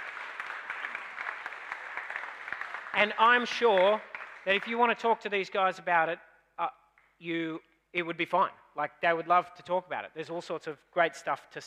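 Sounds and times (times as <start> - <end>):
audience clapping: 0.0 - 5.2
speech: 3.0 - 11.6.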